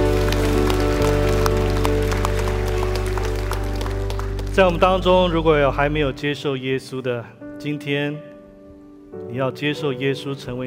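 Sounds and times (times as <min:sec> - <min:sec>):
audience applause: 0:00.0 - 0:05.5
speech: 0:04.6 - 0:08.3, 0:09.1 - 0:10.6.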